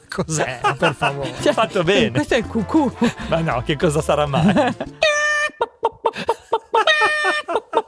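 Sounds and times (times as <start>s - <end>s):
speech: 0.1s - 5.0s
person imitating a hen cackling after laying an egg: 5.0s - 5.7s, 6.8s - 7.7s.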